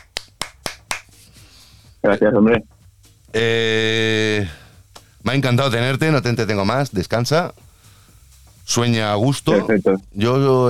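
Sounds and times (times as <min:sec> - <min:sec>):
person clapping hands: 0:00.0 - 0:01.2
speech: 0:02.0 - 0:02.7, 0:03.3 - 0:04.6, 0:05.3 - 0:07.6, 0:08.7 - 0:10.6.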